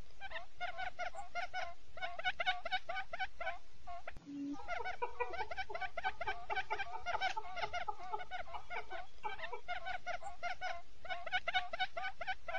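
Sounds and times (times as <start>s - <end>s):
quail clucking in chorus: 0.0s - 12.5s.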